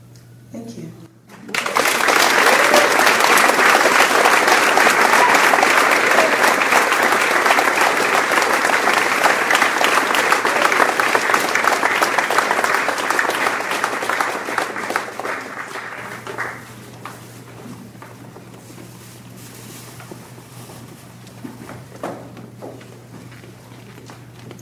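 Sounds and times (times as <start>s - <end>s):
deafening audience applause: 1.3s - 18.2s.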